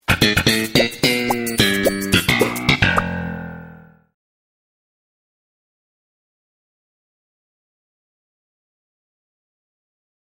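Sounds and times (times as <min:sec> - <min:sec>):
sitcom bass riff: 0:00.0 - 0:04.2.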